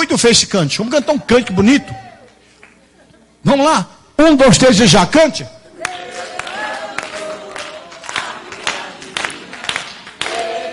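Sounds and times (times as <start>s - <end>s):
speech: 0.1s - 2.0s, 3.4s - 5.6s
audience clapping hands unevenly: 5.8s - 10.7s.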